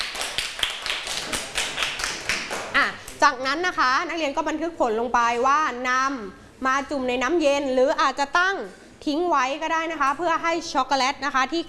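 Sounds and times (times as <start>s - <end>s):
classroom clapping for a classmate: 0.0s - 3.2s
speech: 3.2s - 11.6s.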